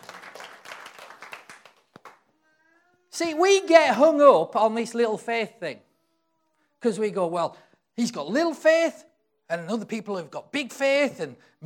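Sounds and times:
audience clapping: 0:00.0 - 0:02.3
speech: 0:03.2 - 0:05.9, 0:06.8 - 0:11.6.

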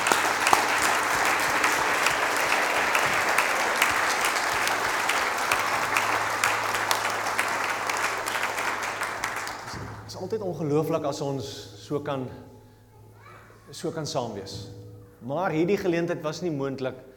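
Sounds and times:
audience applause: 0:00.0 - 0:10.0
speech: 0:10.3 - 0:12.5, 0:13.7 - 0:17.1.

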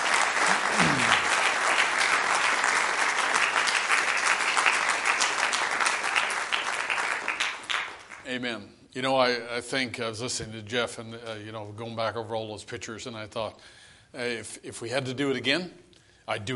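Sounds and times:
audience applause: 0:00.0 - 0:08.2
speech: 0:08.4 - 0:16.5.

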